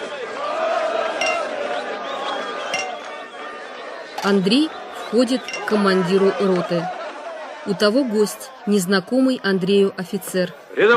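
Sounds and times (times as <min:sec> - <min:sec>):
laughter: 0:00.0 - 0:09.8
glasses clinking in a toast: 0:01.2 - 0:01.6, 0:02.7 - 0:03.1, 0:05.3 - 0:06.3
speech: 0:04.2 - 0:07.0, 0:07.6 - 0:10.9.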